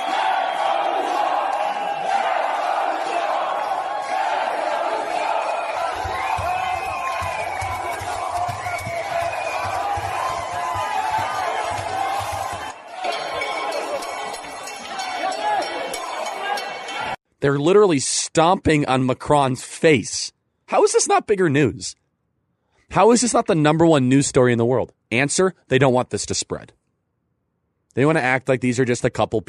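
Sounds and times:
protesters shouting while storming a town hall in Paris: 0.0s - 17.2s
speech: 17.4s - 22.0s, 22.9s - 26.8s, 27.9s - 29.4s.

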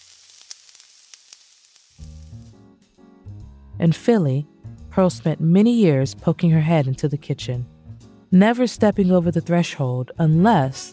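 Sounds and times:
fried chicken crackling on the stove: 0.0s - 2.6s
speech: 3.8s - 7.7s, 8.3s - 10.9s.

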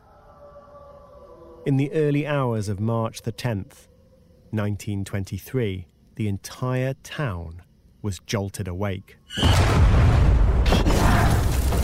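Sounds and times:
speech: 1.6s - 3.9s, 4.5s - 10.9s
explosion blast: 9.4s - 11.8s.

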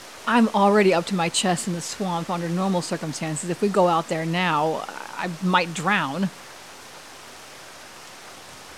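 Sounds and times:
torrential rain: 0.0s - 8.7s
speech: 0.3s - 6.5s.

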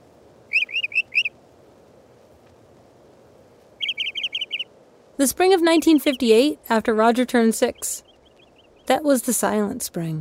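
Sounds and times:
Northern mockingbird singing repeated varied phrases: 0.5s - 1.3s, 3.8s - 4.7s, 5.5s - 9.2s
speech: 5.2s - 8.1s, 8.9s - 10.2s.

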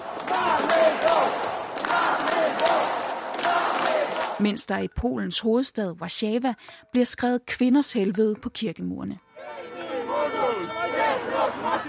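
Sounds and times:
protesters shouting in a cathedral: 0.0s - 4.4s, 9.3s - 11.8s
speech: 4.4s - 9.3s.

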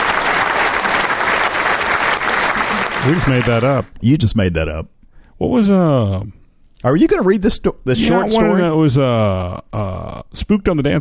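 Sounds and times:
crowd applause: 0.0s - 3.9s
speech: 3.0s - 11.0s.

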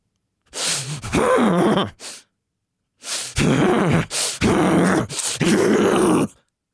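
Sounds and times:
person forcing deep stressful huffing breaths: 0.5s - 2.3s, 3.0s - 5.5s.

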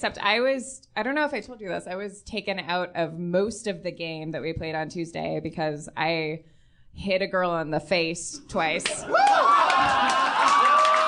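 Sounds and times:
speech: 0.0s - 10.2s
cheering: 8.9s - 11.0s.

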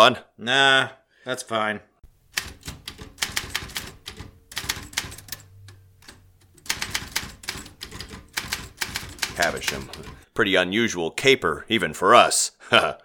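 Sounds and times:
speech: 0.0s - 2.5s, 9.4s - 13.0s
typewriter clacking typing up case notes: 2.3s - 10.2s.

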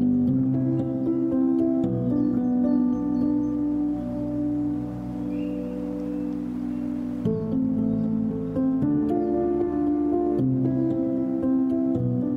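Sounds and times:
string music in sustained overlapping chords: 0.0s - 12.3s
soft airy hiss: 2.6s - 11.9s.

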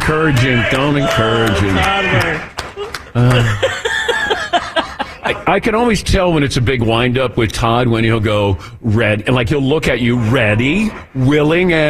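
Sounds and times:
courtesy applause: 0.0s - 4.6s
speech: 0.1s - 3.8s, 5.5s - 11.8s
laughter: 1.0s - 5.9s.

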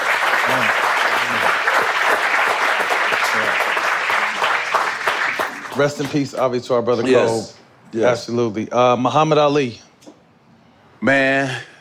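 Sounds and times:
audience applause: 0.0s - 6.4s
speech: 5.8s - 9.8s, 11.0s - 11.7s.

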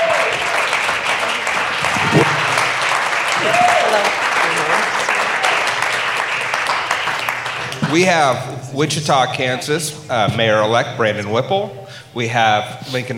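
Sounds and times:
audience applause: 0.0s - 8.4s
speech: 7.9s - 13.1s.

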